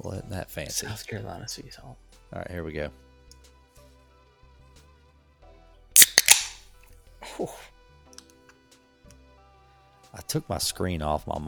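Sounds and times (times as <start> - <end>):
speech: 0.0 - 3.0, 7.4 - 7.7, 10.2 - 11.4
beer being opened: 6.0 - 6.7.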